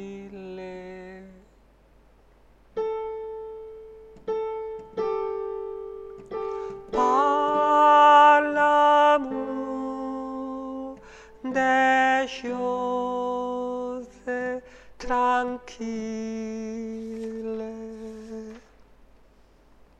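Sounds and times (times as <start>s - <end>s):
tenor singing: 0.0s - 1.5s, 6.7s - 18.8s.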